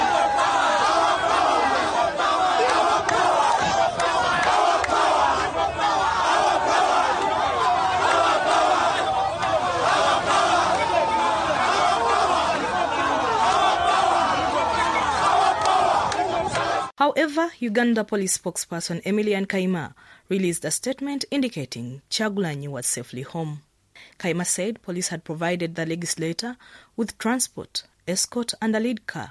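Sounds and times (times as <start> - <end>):
large crowd chanting and shouting slogans: 0.0 - 16.9
speech: 17.2 - 29.2.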